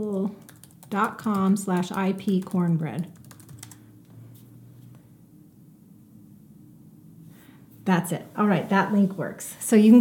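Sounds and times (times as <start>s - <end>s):
speech: 0.0s - 3.2s, 7.9s - 10.0s
computer keyboard typing a web link: 0.0s - 3.8s.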